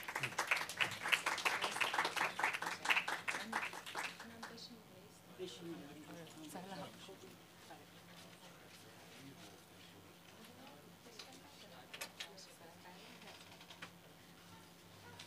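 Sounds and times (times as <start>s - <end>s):
audience applause: 0.0s - 4.5s.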